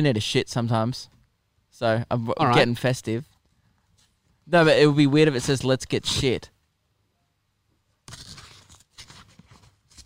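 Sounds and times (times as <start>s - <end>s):
speech: 0.0s - 3.3s, 4.5s - 6.5s
tearing as something is ripped out of a birthday present: 8.0s - 10.0s.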